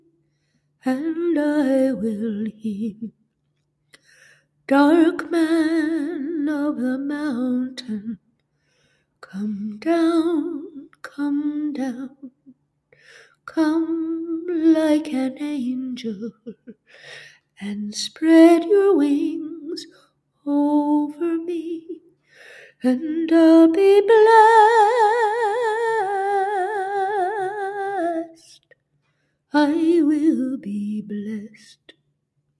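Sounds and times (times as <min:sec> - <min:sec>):
a cappella folk singing: 0:00.8 - 0:03.1, 0:04.7 - 0:08.2, 0:09.2 - 0:12.4, 0:13.5 - 0:16.7, 0:17.6 - 0:22.0, 0:22.7 - 0:28.6, 0:29.5 - 0:31.8.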